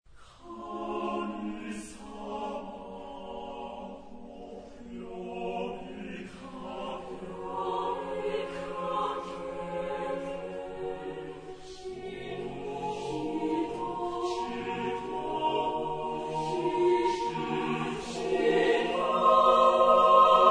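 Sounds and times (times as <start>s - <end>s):
chorus singing tempestoso: 0.3s - 20.4s.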